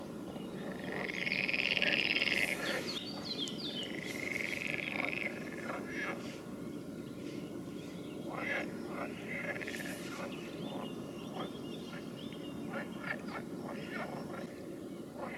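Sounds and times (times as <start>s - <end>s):
frog chorus of rasping calls: 0.0s - 15.3s.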